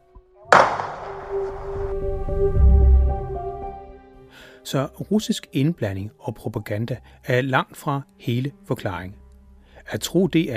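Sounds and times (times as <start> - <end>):
gunshot sound effect: 0.5 - 2.0
speech: 4.3 - 9.2, 9.8 - 10.5.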